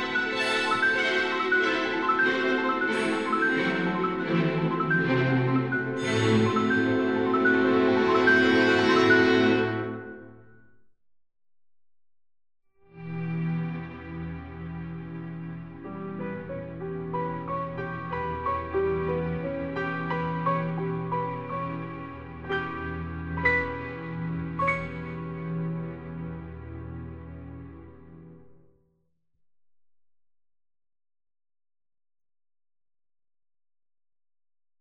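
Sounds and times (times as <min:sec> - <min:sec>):
strings: 0:00.0 - 0:10.4, 0:12.9 - 0:28.6.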